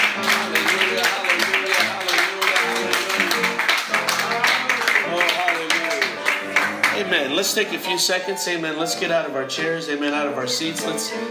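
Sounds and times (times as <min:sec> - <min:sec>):
crowd clapping in praise: 0:00.0 - 0:07.5
speech: 0:07.2 - 0:11.2.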